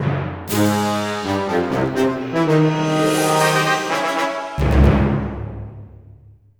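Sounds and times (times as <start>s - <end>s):
victory outro music: 0.5s - 5.9s.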